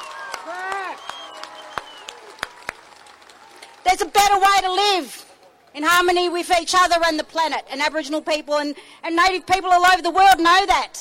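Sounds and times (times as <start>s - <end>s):
scattered audience claps: 0.0s - 5.7s
speech: 4.0s - 10.9s.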